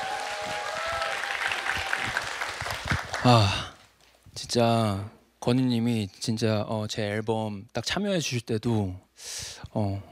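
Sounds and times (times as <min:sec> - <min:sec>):
audience applause: 0:00.0 - 0:03.7
speech: 0:03.2 - 0:03.7, 0:04.4 - 0:10.1.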